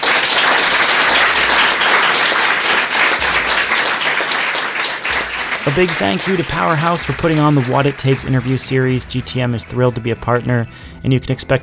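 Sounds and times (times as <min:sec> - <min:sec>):
audience applause: 0:00.0 - 0:09.1
speech: 0:05.7 - 0:11.6.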